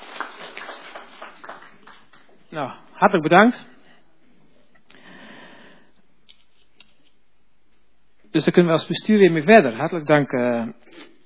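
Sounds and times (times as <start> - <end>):
group of people applauding: 0.0 - 2.5
speech: 2.5 - 3.7, 8.4 - 11.1.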